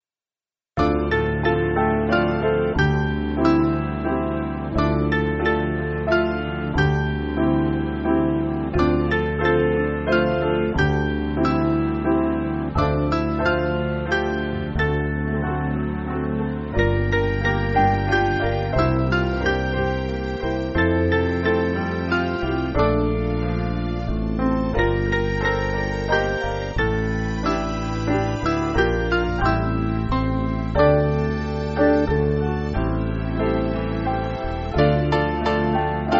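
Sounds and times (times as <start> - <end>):
piano: 0.8 - 36.1.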